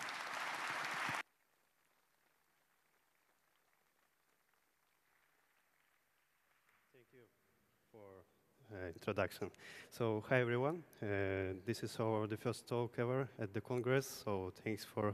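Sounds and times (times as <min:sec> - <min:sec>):
round of applause: 0:00.0 - 0:07.2
speech: 0:07.0 - 0:15.1.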